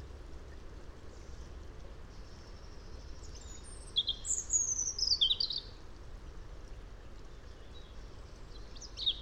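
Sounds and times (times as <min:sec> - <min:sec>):
European robin Erithacus rubecula song: 0:02.1 - 0:05.8, 0:07.0 - 0:09.2.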